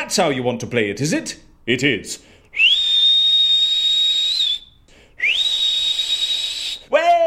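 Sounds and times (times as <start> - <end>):
speech: 0.1 - 2.7
person whistling: 2.5 - 6.9.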